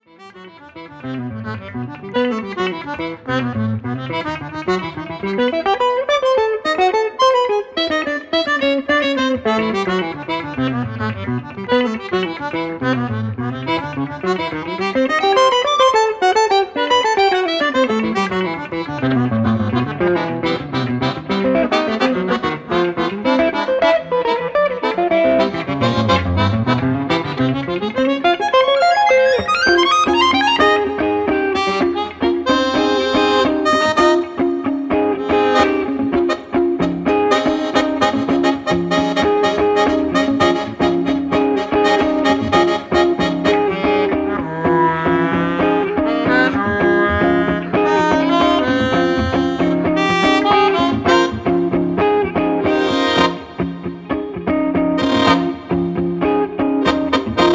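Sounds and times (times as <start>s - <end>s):
choro music: 0.0s - 57.5s.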